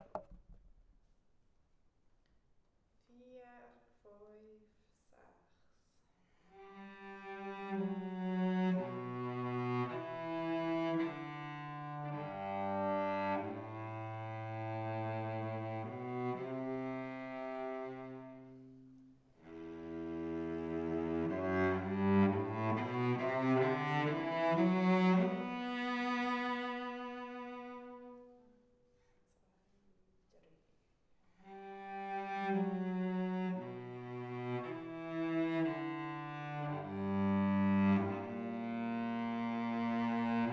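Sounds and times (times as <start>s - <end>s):
cello: 6.4s - 28.7s, 31.4s - 40.5s.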